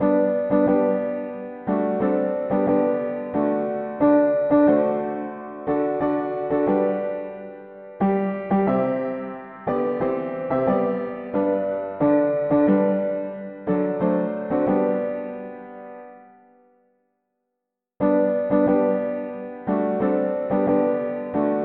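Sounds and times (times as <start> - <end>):
mono piano: 0.0 - 17.1, 18.0 - 21.6.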